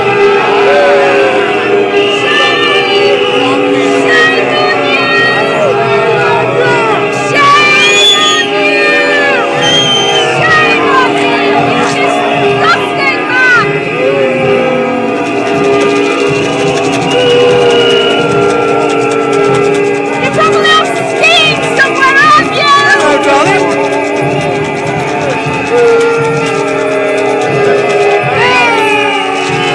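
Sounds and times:
crowd booing: 0:00.0 - 0:29.7.

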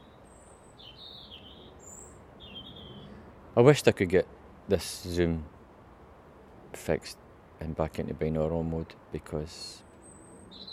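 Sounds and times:
outdoor bird song: 0:00.0 - 0:03.4, 0:09.6 - 0:10.7
speech: 0:03.6 - 0:05.5, 0:06.8 - 0:09.8.

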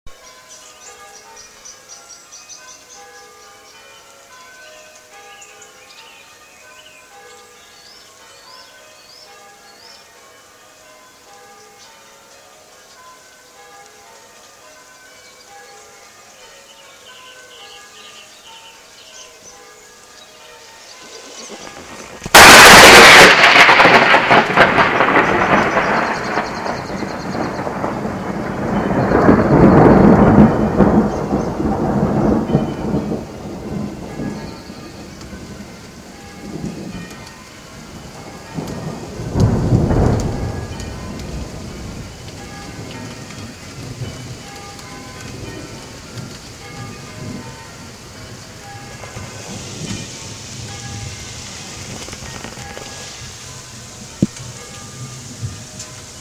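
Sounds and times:
church bells ringing: 0:00.1 - 0:56.1
rain: 0:00.1 - 0:56.1
thunder: 0:21.0 - 0:37.2, 0:37.8 - 0:53.5, 0:54.2 - 0:56.1.

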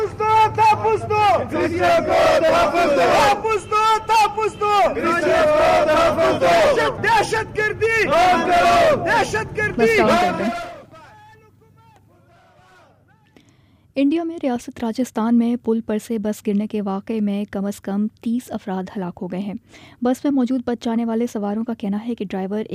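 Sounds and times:
protesters chanting slogans: 0:00.0 - 0:03.5, 0:04.2 - 0:11.2
speech: 0:00.9 - 0:10.7, 0:14.0 - 0:22.7.

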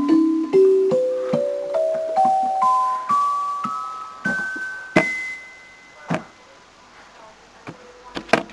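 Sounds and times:
lullaby music: 0:00.0 - 0:06.4.

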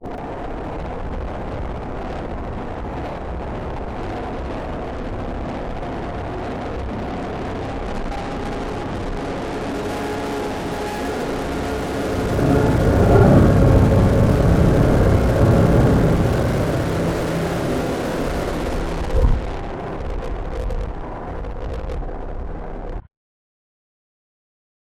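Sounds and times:
train passing in a tunnel remix: 0:07.6 - 0:20.0.

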